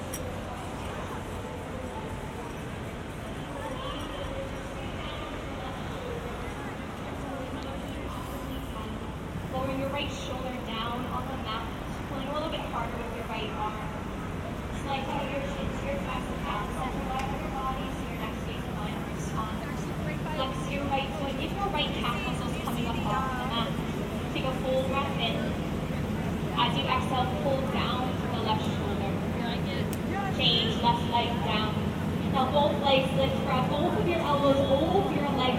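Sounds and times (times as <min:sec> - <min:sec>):
crowd chattering between Grand Central and Times Square: 0:00.0 - 0:35.5
traffic rumble: 0:00.0 - 0:35.5
woman's voice: 0:08.6 - 0:14.0, 0:14.8 - 0:25.6, 0:26.5 - 0:35.5.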